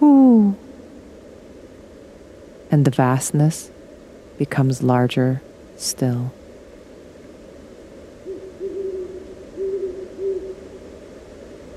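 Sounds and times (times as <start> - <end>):
speech: 0.0 - 0.6, 2.7 - 3.8, 4.4 - 6.4
quiet background hiss: 0.0 - 11.7
owl hooting: 8.2 - 11.1.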